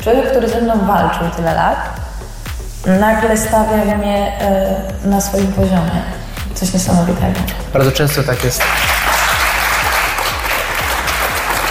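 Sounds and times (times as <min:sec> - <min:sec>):
speech: 0:00.0 - 0:02.0, 0:02.8 - 0:08.9
audience applause: 0:08.3 - 0:11.6.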